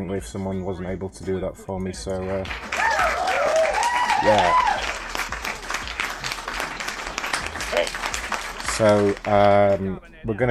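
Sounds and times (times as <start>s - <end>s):
speech: 0.0s - 2.9s, 4.2s - 4.9s, 8.8s - 10.5s
clapping: 2.4s - 9.8s.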